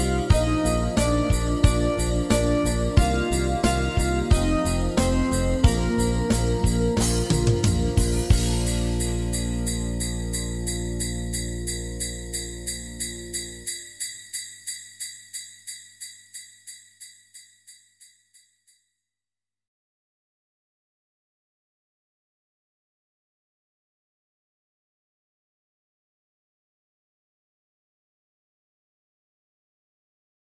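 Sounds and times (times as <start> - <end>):
slow sleigh bells: 0.0 - 18.9.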